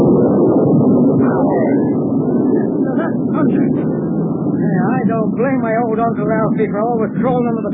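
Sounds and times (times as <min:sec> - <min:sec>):
thunder rumbling during storm: 0:00.0 - 0:07.7
speech: 0:04.7 - 0:07.7.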